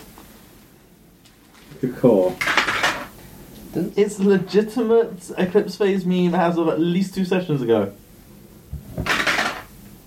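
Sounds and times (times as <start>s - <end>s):
speech: 1.8s - 2.6s, 3.8s - 8.0s
dice landing on a table: 9.0s - 9.7s.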